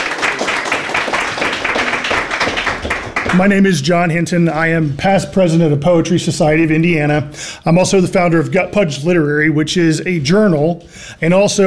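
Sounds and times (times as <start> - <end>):
crowd clapping: 0.0 - 3.8
speech: 3.3 - 11.6.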